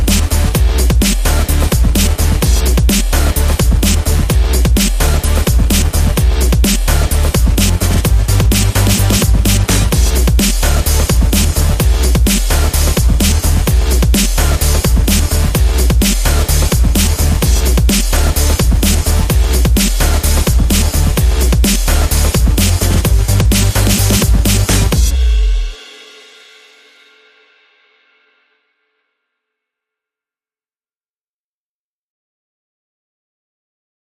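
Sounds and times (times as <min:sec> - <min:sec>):
rhythm guitar: 0:00.0 - 0:25.4.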